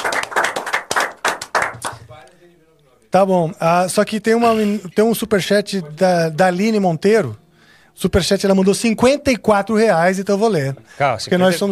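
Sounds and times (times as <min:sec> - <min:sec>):
round of applause: 0:00.0 - 0:02.2
speech: 0:03.1 - 0:07.4, 0:08.0 - 0:11.6.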